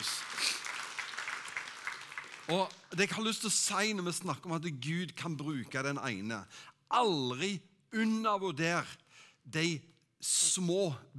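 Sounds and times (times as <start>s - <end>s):
audience clapping: 0.0s - 4.5s
speech: 2.5s - 11.1s.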